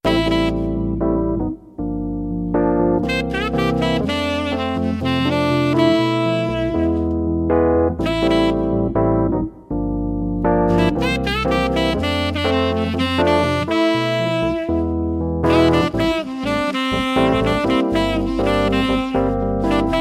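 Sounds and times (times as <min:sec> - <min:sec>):
lounge music duo: 0:00.0 - 0:19.9.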